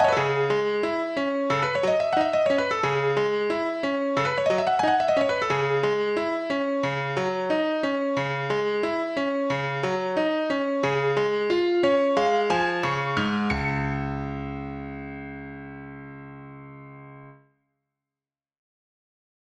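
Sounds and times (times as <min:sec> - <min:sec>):
nocturne in C-sharp minor: 0:00.0 - 0:14.0.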